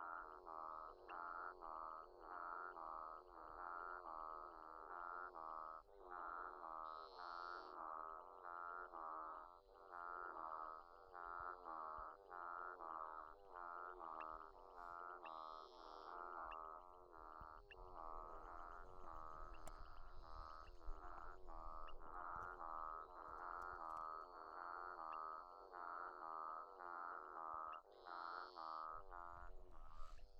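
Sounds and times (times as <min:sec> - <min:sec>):
Physalaemus centralis frog chorus: 0:00.0 - 0:30.3.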